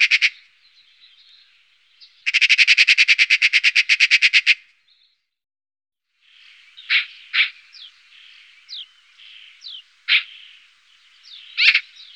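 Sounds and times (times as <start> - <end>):
black-billed magpie: 0.0 - 0.5, 2.2 - 4.7, 6.3 - 12.1.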